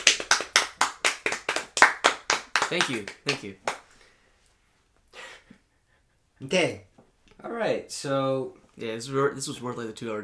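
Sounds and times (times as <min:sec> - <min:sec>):
hand clapping: 0:00.0 - 0:03.9
speech: 0:02.7 - 0:03.7, 0:06.4 - 0:10.2.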